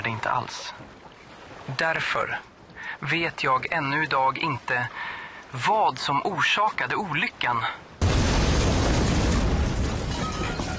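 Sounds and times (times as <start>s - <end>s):
speech: 0.2s - 7.9s
loud explosion: 8.0s - 10.7s.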